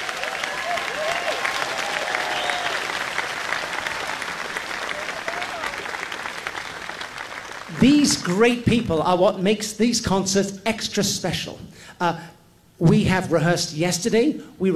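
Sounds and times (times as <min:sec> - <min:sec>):
audience applause: 0:00.0 - 0:08.4
speech: 0:07.8 - 0:14.7.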